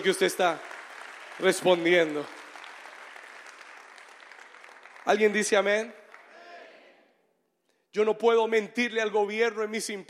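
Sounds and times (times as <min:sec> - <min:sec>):
speech: 0:00.0 - 0:00.7, 0:01.4 - 0:02.4, 0:05.0 - 0:06.0, 0:07.9 - 0:10.0
audience applauding: 0:00.0 - 0:06.8.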